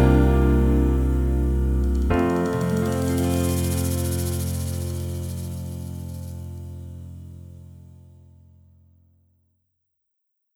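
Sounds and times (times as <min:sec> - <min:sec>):
karaoke backing track: 0:00.0 - 0:06.3.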